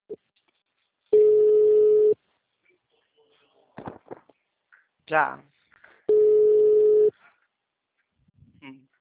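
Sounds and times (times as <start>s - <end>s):
outgoing telephone call ringback tone: 1.2s - 2.2s, 6.1s - 7.1s
speech: 5.1s - 5.5s.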